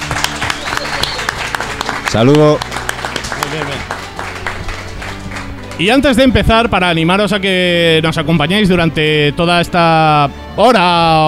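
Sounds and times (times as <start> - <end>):
audience applause: 0.0 - 6.0
speech: 2.1 - 2.7, 5.8 - 11.2.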